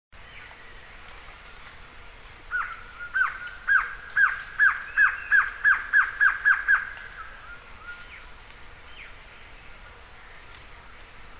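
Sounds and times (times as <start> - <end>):
Glossy antshrike Sakesphorus luctuosus calling bright notes and thin whistles: 2.5 - 8.3.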